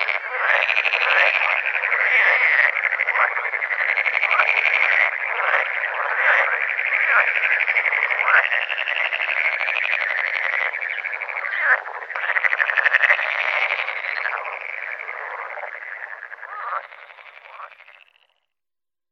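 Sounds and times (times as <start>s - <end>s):
green frog calling: 0.0s - 18.5s.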